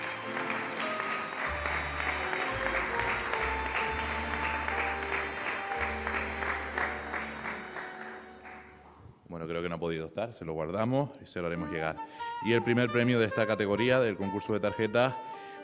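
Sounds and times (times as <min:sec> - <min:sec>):
audience applause: 0:00.0 - 0:09.0
speech: 0:09.8 - 0:15.3.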